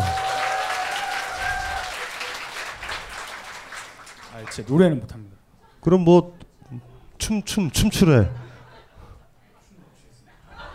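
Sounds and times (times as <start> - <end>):
crowd applause: 0.0 - 4.7
speech: 4.5 - 8.4.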